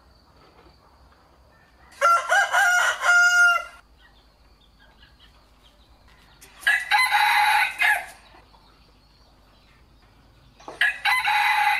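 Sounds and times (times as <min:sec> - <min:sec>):
rooster crowing: 0:01.5 - 0:03.8, 0:06.6 - 0:08.2, 0:10.8 - 0:11.7.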